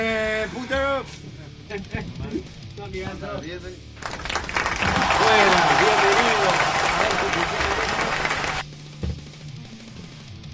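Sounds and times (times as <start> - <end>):
speech: 1.0 - 8.0
crowd noise with applause as background sound effect: 4.0 - 8.6
thump: 9.0 - 9.3.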